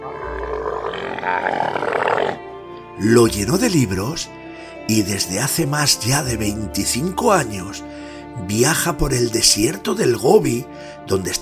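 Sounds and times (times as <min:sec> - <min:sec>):
camel grunting: 0:00.0 - 0:02.5
speech: 0:01.3 - 0:01.9, 0:03.0 - 0:11.4.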